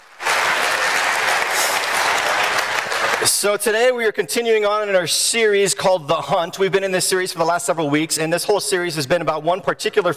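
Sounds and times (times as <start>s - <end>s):
audience applause: 0.0s - 3.3s
speech: 3.2s - 10.1s.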